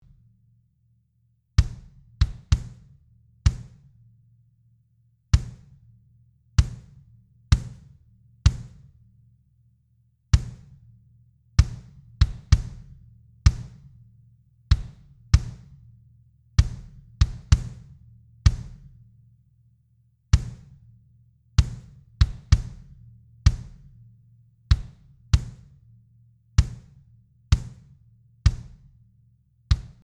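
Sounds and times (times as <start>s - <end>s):
kick drum: 1.6s - 4.0s, 5.4s - 6.0s, 6.6s - 9.0s, 10.4s - 11.0s, 11.6s - 14.0s, 14.7s - 16.0s, 16.6s - 19.1s, 20.4s - 21.0s, 21.6s - 26.0s, 26.6s - 29.1s, 29.7s - 30.0s.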